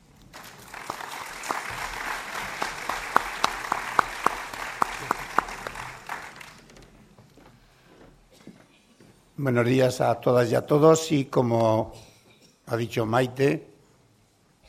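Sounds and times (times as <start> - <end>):
audience applauding: 0.3 - 6.8
speech: 9.4 - 12.1, 12.7 - 13.7.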